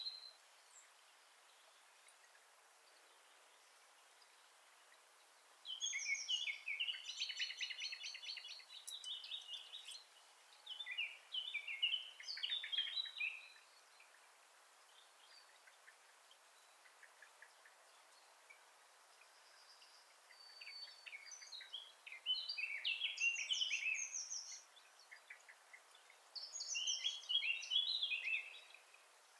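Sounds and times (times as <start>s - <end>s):
Eurasian blackcap song: 5.7s - 13.6s, 19.8s - 28.9s.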